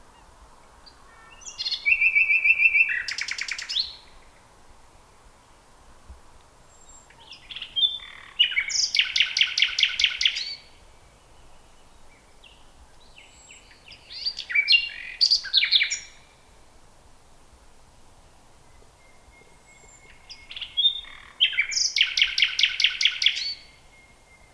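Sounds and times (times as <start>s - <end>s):
common nightingale Luscinia megarhynchos singing: 1.3s - 4.0s, 6.9s - 10.7s, 11.5s - 16.3s, 19.0s - 24.5s.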